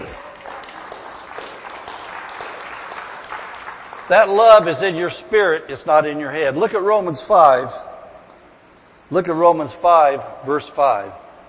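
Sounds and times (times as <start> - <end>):
crowd applauding: 0.0 - 4.6
speech: 4.1 - 7.8, 9.1 - 11.2.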